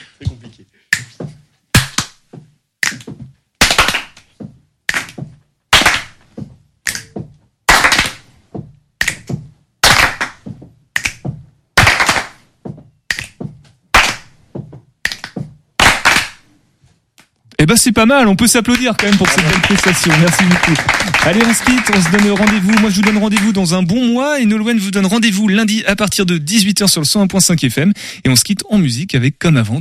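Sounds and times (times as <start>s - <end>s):
body percussion rhythm demonstration: 0.0s - 16.4s, 18.4s - 25.3s
speech: 17.7s - 29.7s.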